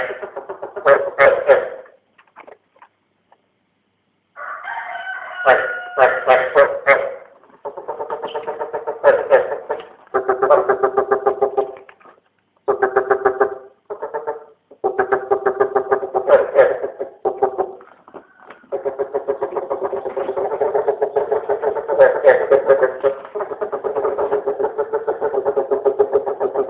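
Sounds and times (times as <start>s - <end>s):
East Asian bullfrogs calling in dense pulsed bursts: 0.0s - 1.9s, 6.0s - 11.9s, 12.6s - 17.9s, 18.6s - 26.6s.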